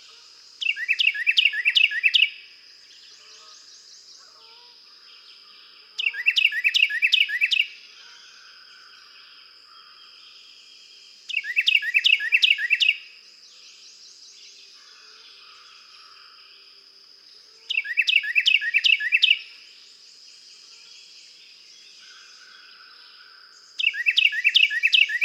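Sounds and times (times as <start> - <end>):
Carolina wren: 0.0 - 25.2.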